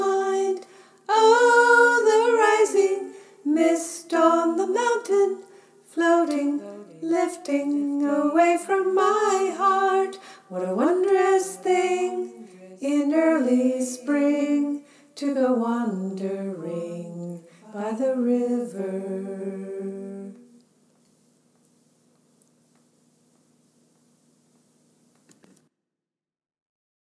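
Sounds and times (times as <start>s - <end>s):
choir upper part singing: 0.0s - 5.4s, 6.0s - 20.5s.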